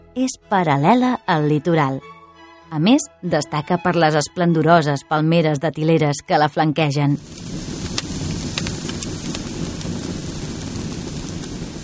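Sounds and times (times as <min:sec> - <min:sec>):
speech: 0:00.2 - 0:02.1, 0:02.7 - 0:07.5
bonfire crackling: 0:07.2 - 0:11.8.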